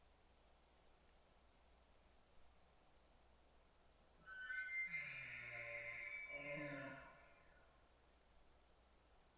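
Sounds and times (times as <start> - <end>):
elk bugling: 4.3 - 7.5.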